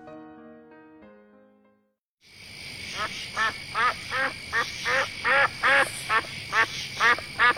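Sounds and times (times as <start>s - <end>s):
duck quacking: 2.9s - 7.5s.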